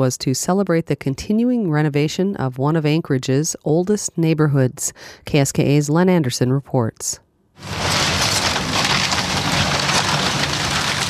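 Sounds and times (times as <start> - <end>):
speech: 0.0 - 8.2
steam shovel demolishing wooden rental units: 7.6 - 11.0.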